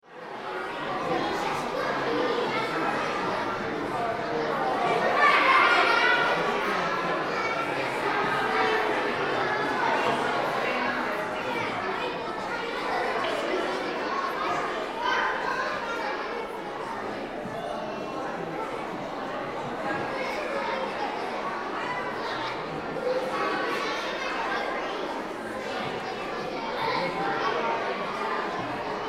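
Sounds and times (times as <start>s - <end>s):
school gym ambience: 0.0s - 29.0s.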